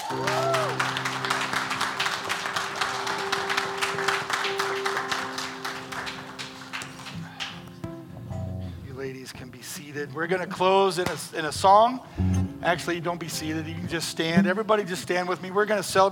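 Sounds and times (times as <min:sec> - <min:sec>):
audience applause for graduating class: 0:00.0 - 0:07.8
speech: 0:00.1 - 0:00.6, 0:10.0 - 0:16.1.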